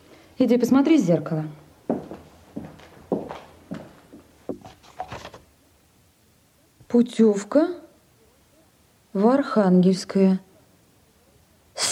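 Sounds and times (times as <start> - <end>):
speech: 0.4 - 1.6, 7.0 - 7.8, 9.2 - 10.5
footsteps of a man walking: 1.8 - 5.4.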